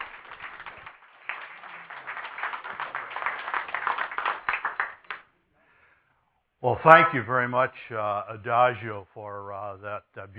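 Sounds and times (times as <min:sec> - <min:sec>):
audience clapping at a church service to welcome performers: 0:00.0 - 0:05.3
speech: 0:06.6 - 0:10.3.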